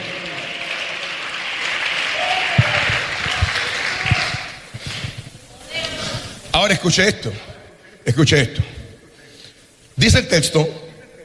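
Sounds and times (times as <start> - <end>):
audience applause: 0.0 - 5.2
speech: 6.6 - 8.7, 10.0 - 10.8.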